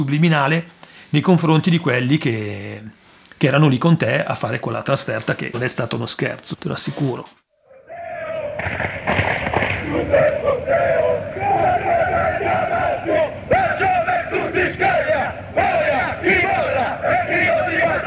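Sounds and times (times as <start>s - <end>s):
speech: 0.0s - 7.4s
football fans chanting in chorus: 7.7s - 18.0s
sharp bangs and pops: 8.6s - 10.4s.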